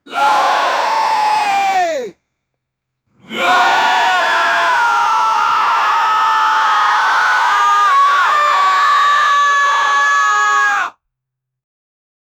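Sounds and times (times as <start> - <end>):
horror game dead soldier battle cry: 0.1 - 2.1, 3.2 - 11.0.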